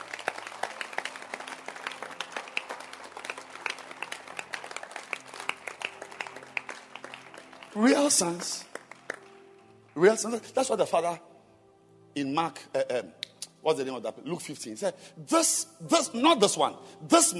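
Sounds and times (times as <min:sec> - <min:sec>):
audience clapping hands: 0:00.0 - 0:10.4
speech: 0:07.8 - 0:08.7, 0:10.0 - 0:11.3, 0:12.2 - 0:17.3.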